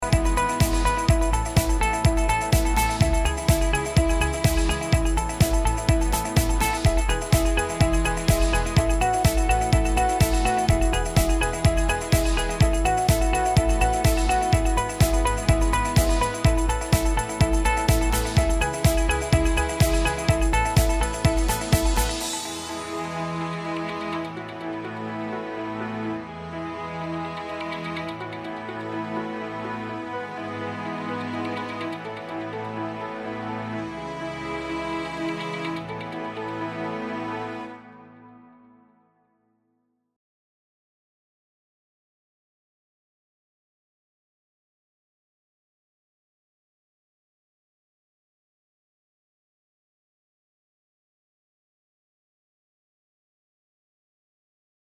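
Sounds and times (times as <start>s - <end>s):
happy corporate music: 0.0s - 38.1s.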